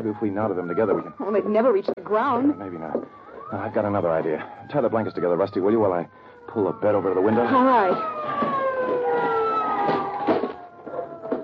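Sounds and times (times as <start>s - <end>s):
speech: 0.0s - 8.6s
police car siren wailing: 0.0s - 11.4s
soft thumps and rustles: 7.9s - 11.4s.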